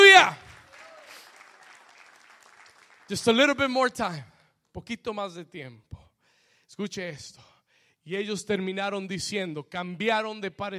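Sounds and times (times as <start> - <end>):
audience applauding: 0.0 - 3.7
speech: 3.1 - 6.0, 6.7 - 10.7.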